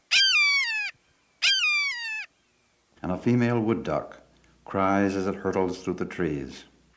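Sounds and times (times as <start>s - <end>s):
red-shouldered hawk calling kee-yer: 0.0s - 2.4s
speech: 3.0s - 6.7s.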